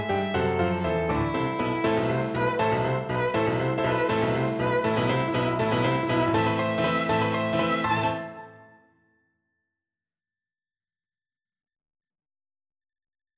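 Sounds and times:
violin scherzo: 0.0s - 8.7s.

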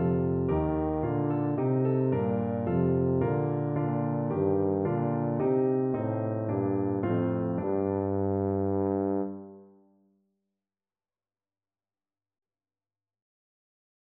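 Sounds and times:
tuba: 0.0s - 9.8s.

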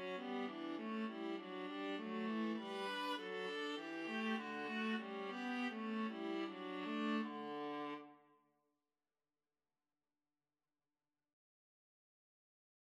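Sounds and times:
viola duet melody: 0.0s - 8.1s.

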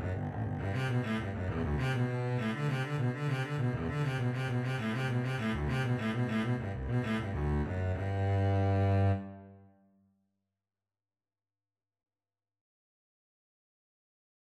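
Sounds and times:
double bass playing a cello suite courante: 0.0s - 9.4s.

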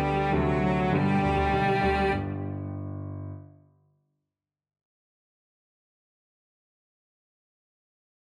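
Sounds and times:
cello playing a battle hymn: 0.0s - 2.8s.

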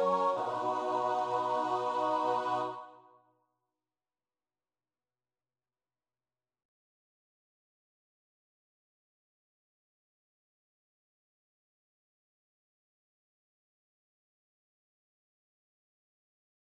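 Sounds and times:
choir singing: 0.0s - 3.2s.

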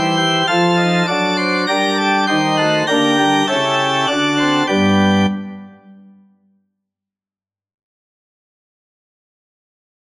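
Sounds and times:
organ: 0.0s - 6.2s.

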